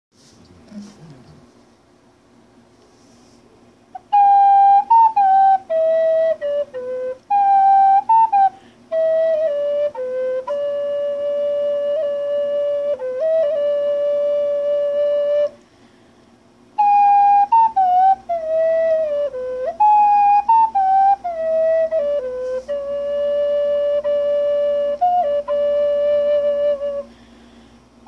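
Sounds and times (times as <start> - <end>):
native flute playing: 3.9 - 15.6, 16.8 - 27.4.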